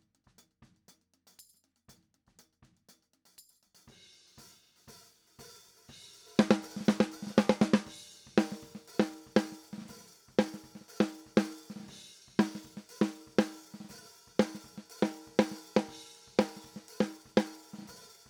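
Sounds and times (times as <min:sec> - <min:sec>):
snare drum top: 0:03.9 - 0:18.2.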